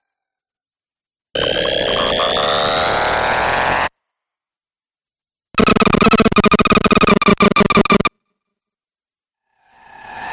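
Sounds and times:
glitch scratchy sounds: 1.4 - 3.9, 5.6 - 8.1.

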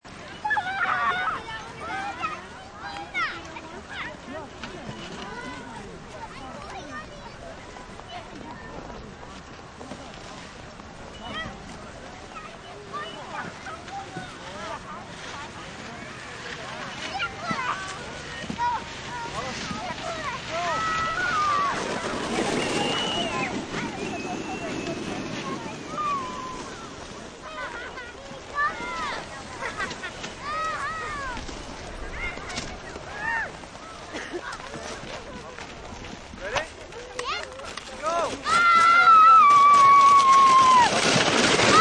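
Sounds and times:
tobogganing outdoors on a crisp winter day: 0.3 - 41.7.

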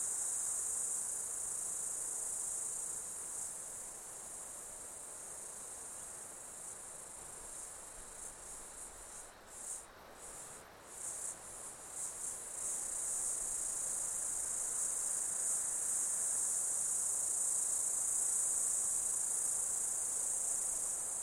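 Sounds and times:
insects droning: 0.0 - 21.2.

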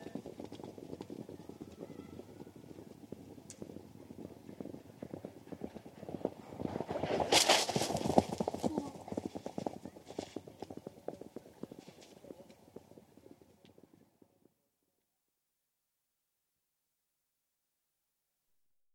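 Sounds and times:
point-to-point racing field of horses passing over a jump with one straggler: 0.0 - 14.0.

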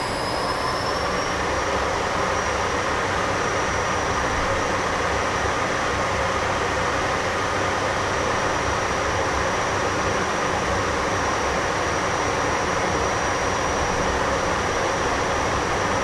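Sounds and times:
CA-27 Sabre jet aircraft flying interior: 0.0 - 16.0.

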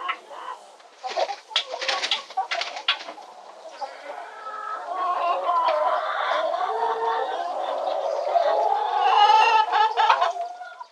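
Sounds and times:
chickens clucking and cackling: 0.0 - 10.9.

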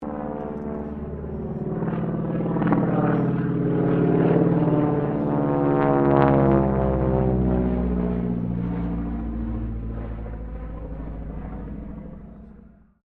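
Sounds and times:
AT-6D Harvard Mk III aircraft pass: 0.0 - 13.0.

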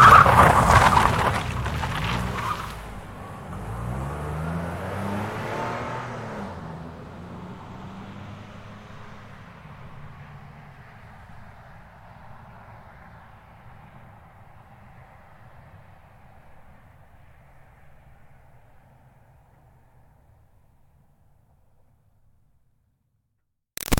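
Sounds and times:
2005 Toyota Highlander V6 swerving and skidding on dirt: 0.0 - 8.7.

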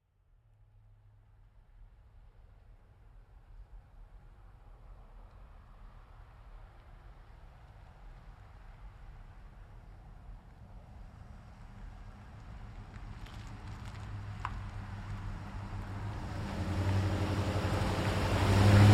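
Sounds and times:
GMC Savana truck driving slowly by a corner: 4.1 - 18.9.

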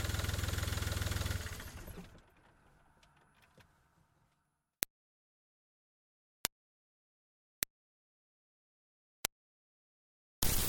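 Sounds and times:
2005 Smart Fortwo car driving slowly heard onboard: 0.0 - 2.9.

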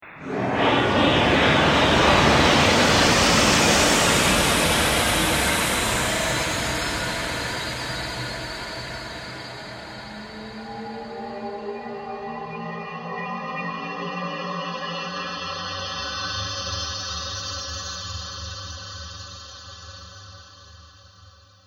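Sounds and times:
ghostly atmospheric pass-by: 0.0 - 12.4.

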